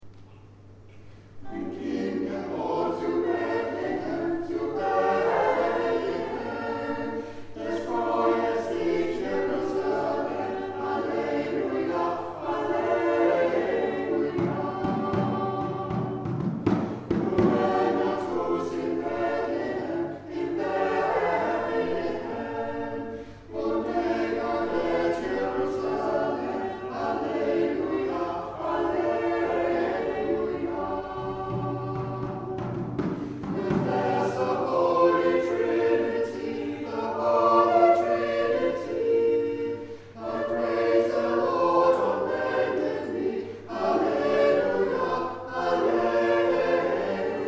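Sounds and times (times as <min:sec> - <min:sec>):
choir singing: 0:01.3 - 0:47.4.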